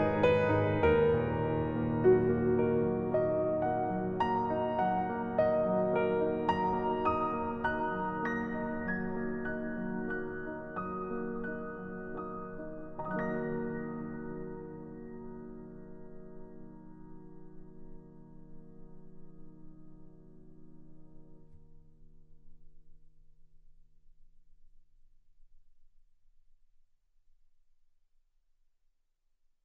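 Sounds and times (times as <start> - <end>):
dramatic sad melancholic cinematic music: 0.0 - 16.7.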